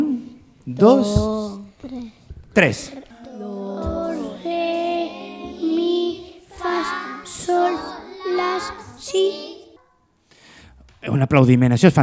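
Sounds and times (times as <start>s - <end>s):
speech: 0.7s - 3.0s, 6.8s - 9.5s, 11.0s - 12.0s
group of children vocally imitating tower church bells: 3.1s - 10.1s.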